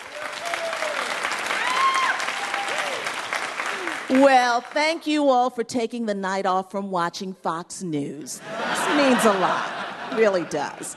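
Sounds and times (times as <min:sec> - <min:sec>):
audience applause: 0:00.0 - 0:04.5
speech: 0:04.1 - 0:10.9
laughter: 0:08.4 - 0:10.9.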